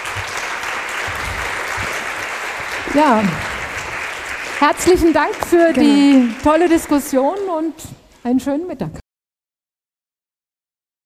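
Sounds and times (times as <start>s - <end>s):
warm audience applause for a panelist: 0.0s - 7.7s
speech: 2.9s - 3.5s, 4.6s - 9.0s.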